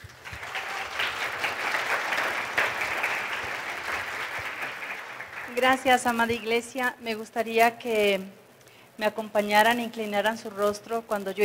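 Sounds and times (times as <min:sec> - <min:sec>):
audience applause: 0:00.0 - 0:06.5
speech: 0:05.6 - 0:08.4, 0:09.0 - 0:11.4.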